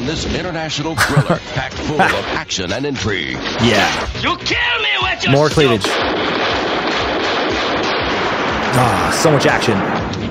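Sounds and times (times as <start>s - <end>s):
speech: 0.0s - 6.4s, 8.7s - 10.2s
laughter: 1.0s - 3.0s
explosion in a movie trailer: 5.9s - 10.2s.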